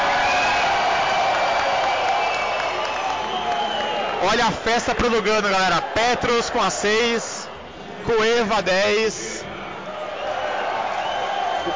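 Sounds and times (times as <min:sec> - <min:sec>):
big stadium crowd applauding a player: 0:00.0 - 0:07.3, 0:09.8 - 0:11.7
speech: 0:04.3 - 0:07.4, 0:08.0 - 0:09.3.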